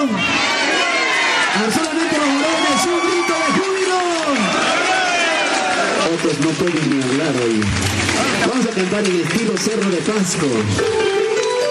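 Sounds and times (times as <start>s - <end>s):
speech: 0.0s - 0.3s, 6.5s - 11.2s
audience shouting for joy: 0.0s - 6.3s, 7.5s - 8.8s.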